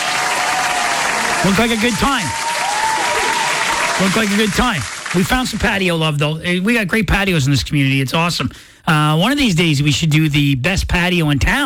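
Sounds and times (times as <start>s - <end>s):
applause sound effect: 0.0s - 5.8s
speech: 1.4s - 2.5s, 4.0s - 11.6s.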